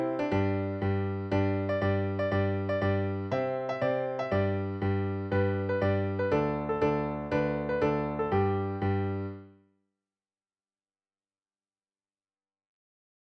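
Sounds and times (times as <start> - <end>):
piano: 0.0 - 9.6.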